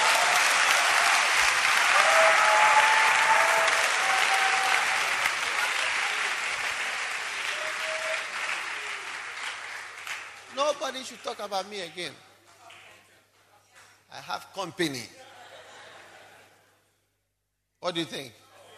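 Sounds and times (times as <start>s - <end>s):
crowd applauding: 0.0s - 11.3s
speech: 10.9s - 12.3s, 14.1s - 15.2s, 17.8s - 18.4s
laughter: 15.1s - 16.9s.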